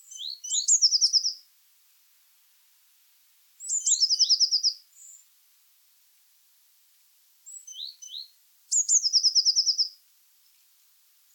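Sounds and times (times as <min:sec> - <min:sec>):
Eurasian blue tit calls: 0:00.1 - 0:01.4, 0:07.5 - 0:09.9.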